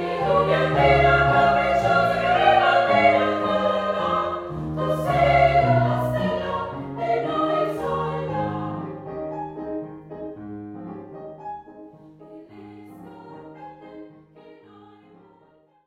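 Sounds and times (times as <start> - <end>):
female choir singing: 0.0 - 9.0, 12.2 - 15.6.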